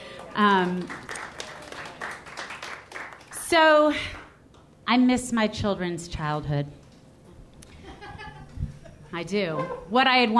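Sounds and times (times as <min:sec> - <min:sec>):
audience clapping: 0:00.0 - 0:03.6
speech: 0:00.4 - 0:01.1, 0:03.5 - 0:04.2, 0:04.9 - 0:06.8, 0:09.1 - 0:10.3.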